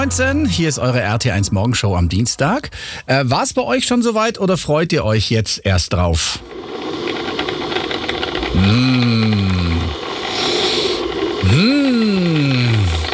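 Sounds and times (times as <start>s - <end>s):
speech: 0.0s - 7.0s, 8.6s - 9.6s
coffee machine brewing: 6.0s - 13.1s.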